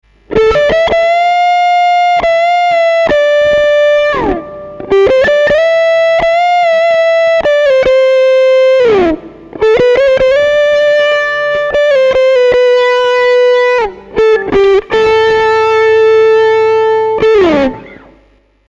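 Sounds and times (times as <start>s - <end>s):
custom overdrive guitar: 0.1s - 18.6s.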